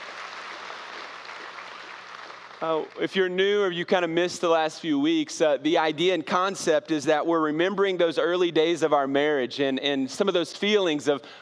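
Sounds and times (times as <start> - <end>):
crowd applauding: 0.0 - 3.1
speech: 2.6 - 11.3.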